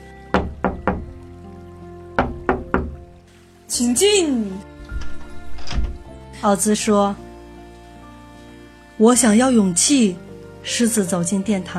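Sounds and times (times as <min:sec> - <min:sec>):
knocking on a palace door: 0:00.4 - 0:01.1, 0:02.2 - 0:03.0
speech: 0:03.8 - 0:04.7, 0:06.4 - 0:07.3, 0:09.0 - 0:11.7.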